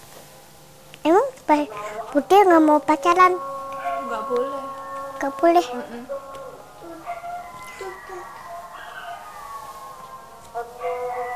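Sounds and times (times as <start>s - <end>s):
people talking quietly: 1.1s - 11.3s
speech: 1.5s - 3.5s, 4.1s - 6.2s
dog howling: 2.9s - 11.3s.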